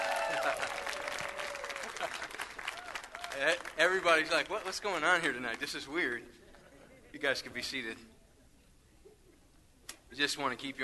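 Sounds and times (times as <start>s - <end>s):
church congregation on the North Coast applauding and cheering a preacher: 0.0s - 5.0s
speech: 0.4s - 1.2s, 3.4s - 6.4s, 7.1s - 8.1s, 10.1s - 10.8s.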